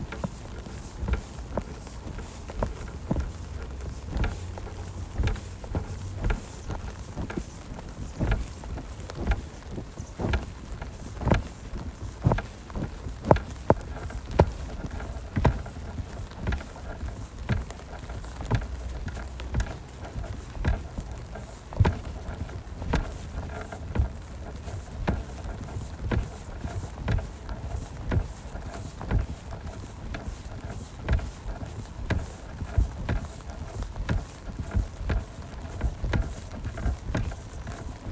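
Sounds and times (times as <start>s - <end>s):
clicks and knocks planting sweet potato seedlings: 0.0s - 38.0s
rain-like hiss: 0.0s - 38.0s.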